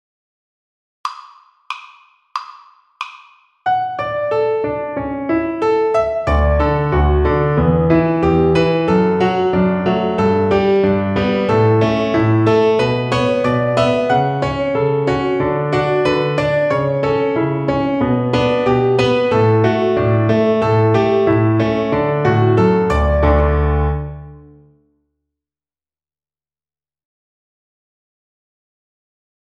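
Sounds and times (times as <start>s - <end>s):
piano accompaniment: 3.0s - 24.8s.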